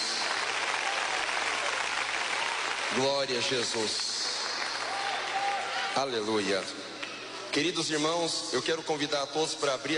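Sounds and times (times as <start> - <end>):
congregation clapping hands in praise at a church service: 0.0 - 7.1
speech: 2.9 - 4.4, 6.0 - 6.9, 7.6 - 9.9.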